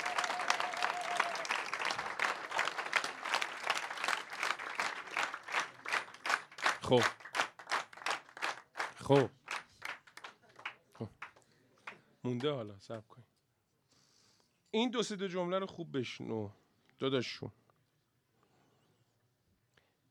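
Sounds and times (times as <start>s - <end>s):
audience clapping: 0.0s - 12.0s
speech: 6.9s - 7.2s, 9.1s - 9.4s, 12.2s - 13.2s, 14.8s - 17.6s.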